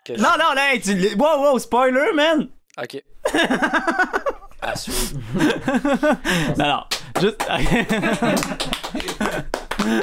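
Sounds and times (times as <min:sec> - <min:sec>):
speech: 0:00.0 - 0:10.0
laughter: 0:03.2 - 0:10.0
hosts applauding themselves: 0:06.9 - 0:10.0.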